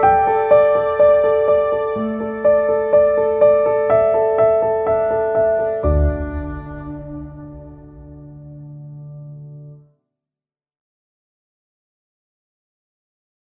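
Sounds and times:
uplifting emotional piano: 0:00.0 - 0:09.8.

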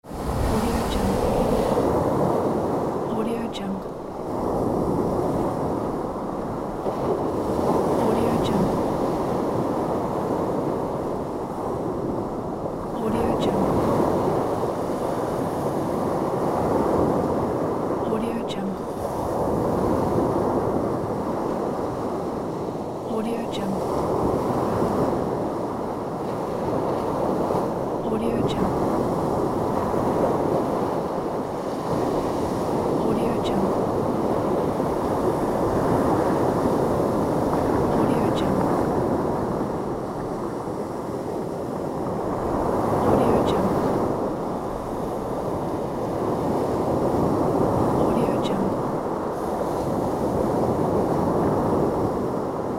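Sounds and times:
ocean storm: 0:00.0 - 0:52.7.

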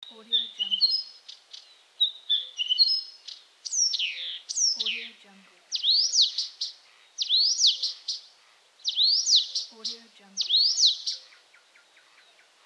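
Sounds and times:
night birds calling: 0:00.0 - 0:12.6.

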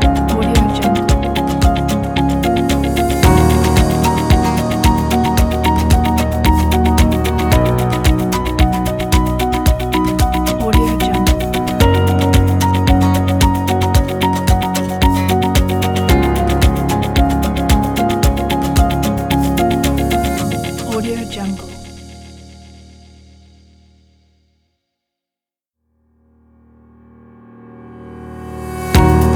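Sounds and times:
upbeat inspiring corporate background music: 0:00.0 - 0:22.4, 0:28.8 - 0:29.3.

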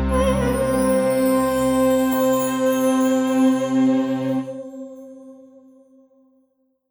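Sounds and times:
oriental Middle East music logo: 0:00.1 - 0:05.3.

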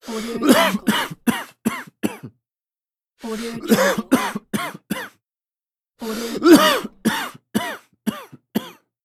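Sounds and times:
man coughing: 0:00.4 - 0:02.4, 0:03.6 - 0:05.2, 0:06.4 - 0:08.9.

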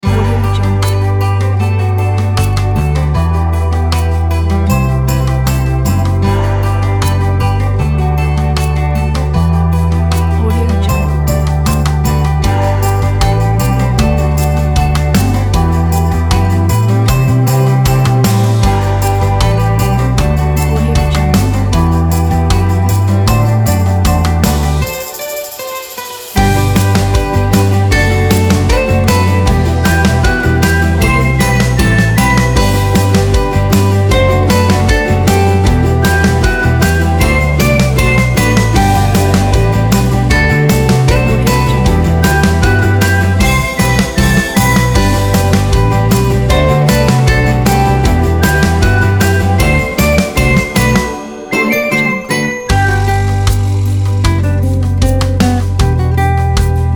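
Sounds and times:
folk music: 0:00.0 - 0:56.9.

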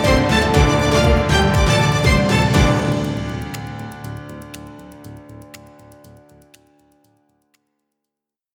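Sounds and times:
news set ident jingle: 0:00.0 - 0:04.8.

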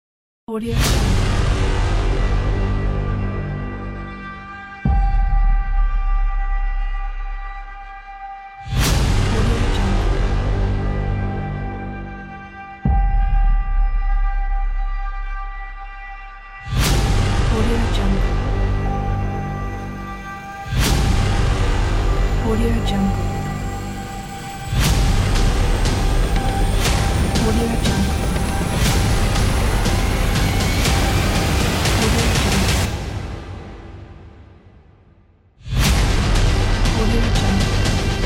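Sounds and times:
aggressive cinematic trailer music: 0:00.6 - 0:38.2.

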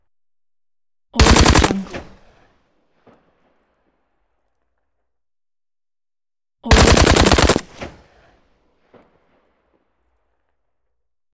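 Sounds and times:
automatic gunfire: 0:01.2 - 0:02.2, 0:06.7 - 0:08.0.

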